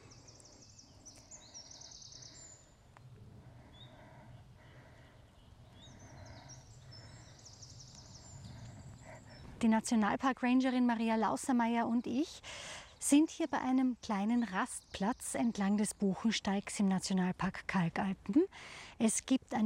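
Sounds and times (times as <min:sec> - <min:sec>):
Eurasian wren singing along the Buchensteig trail in Kalkalpen National Park, Austria: 0:00.0 - 0:02.8, 0:05.2 - 0:18.2
speech: 0:09.6 - 0:19.6.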